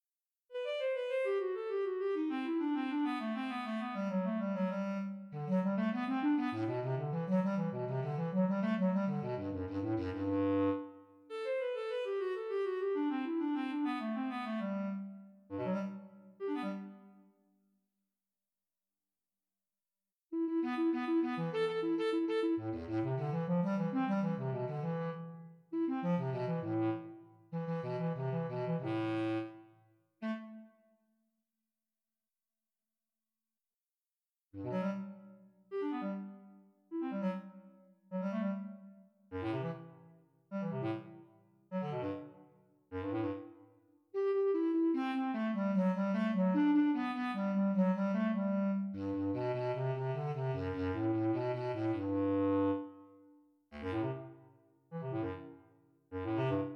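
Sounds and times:
bass clarinet: 0:00.5 - 0:17.2, 0:20.4 - 0:29.6, 0:30.2 - 0:30.8, 0:34.6 - 0:43.6, 0:44.2 - 0:56.7.

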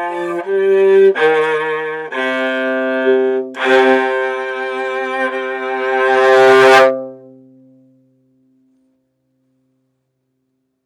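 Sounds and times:
viola playing andante appassionato: 0:00.0 - 0:07.5.

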